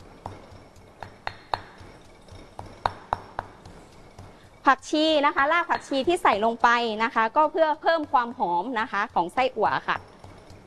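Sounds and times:
pestle pounding yellow curry paste in a mortar: 0:00.0 - 0:10.6
speech: 0:04.7 - 0:10.1.

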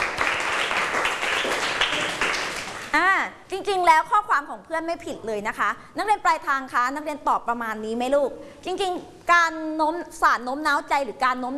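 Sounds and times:
students clapping in classroom: 0:00.0 - 0:03.0
speech: 0:03.5 - 0:11.5.

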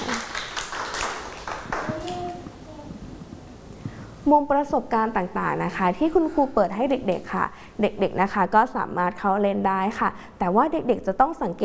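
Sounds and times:
children clapping hands: 0:00.0 - 0:02.4
speech: 0:04.3 - 0:11.6.

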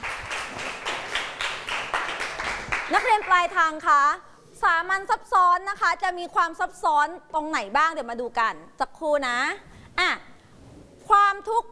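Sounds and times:
students clapping in a classroom: 0:00.0 - 0:03.4
speech: 0:02.9 - 0:10.3, 0:11.1 - 0:11.7.

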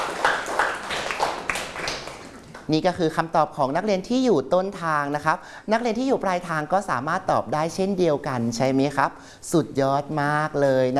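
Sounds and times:
faint scattered classroom applause praising a student: 0:00.0 - 0:02.7
speech: 0:02.7 - 0:10.9.

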